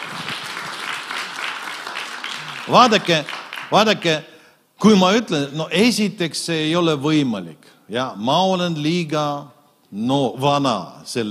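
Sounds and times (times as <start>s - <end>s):
audience applause: 0.0s - 4.1s
speech: 2.7s - 11.2s.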